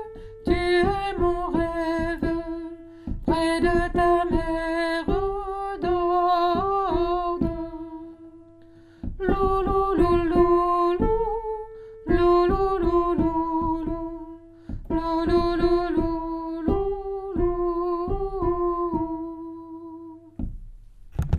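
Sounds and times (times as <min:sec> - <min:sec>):
Basque lullaby sung by a mezzo-soprano: 0:00.0 - 0:08.6, 0:09.2 - 0:20.4.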